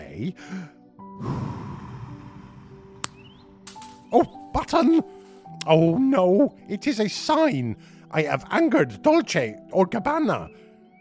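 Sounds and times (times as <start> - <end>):
speech: 0.2 - 1.6, 4.1 - 10.6
deep slow relaxing breath: 0.4 - 3.1.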